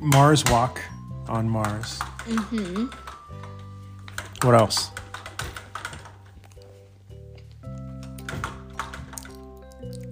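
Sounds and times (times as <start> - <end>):
speech: 0.0 - 3.5, 4.4 - 5.0
chewing mini muffins: 6.3 - 6.8, 9.1 - 10.1.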